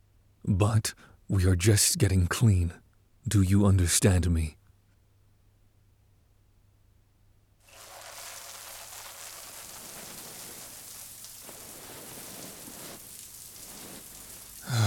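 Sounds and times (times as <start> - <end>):
speech: 0.5 - 4.6
shower water running: 7.7 - 14.8.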